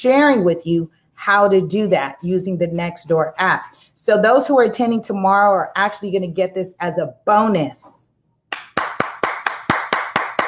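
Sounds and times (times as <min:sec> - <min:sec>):
speech: 0:00.0 - 0:08.0
person clapping hands: 0:08.5 - 0:10.4.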